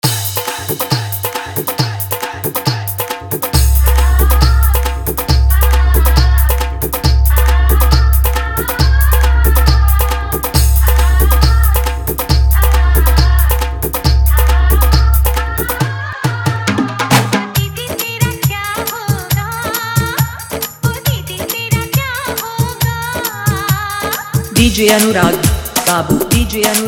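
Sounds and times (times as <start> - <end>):
dholak drum in Hindi bass mix: 0.0 - 26.8
bass: 3.6 - 15.9.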